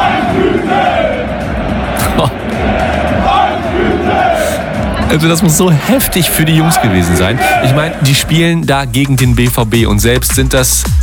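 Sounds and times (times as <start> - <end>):
stadium crowd of 45,000 football fans roaring at HEBC versus BVB cup match: 0.0 - 8.6
speech: 2.2 - 2.4, 5.1 - 11.0.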